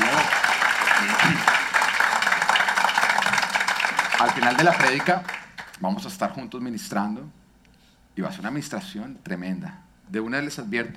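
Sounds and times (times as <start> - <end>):
loud applause from audience: 0.0 - 5.8
speech: 4.2 - 7.4, 8.2 - 10.9.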